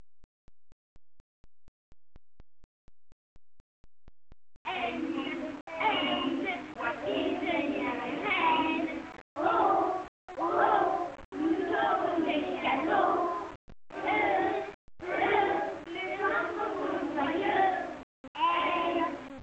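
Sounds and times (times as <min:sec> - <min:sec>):
pupils singing a Christmas song: 0:04.7 - 0:19.4.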